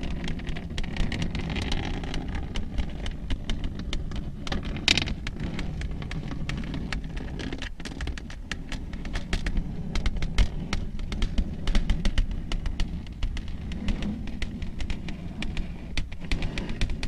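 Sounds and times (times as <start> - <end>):
long nails tapping and scratching: 0.0 - 17.0.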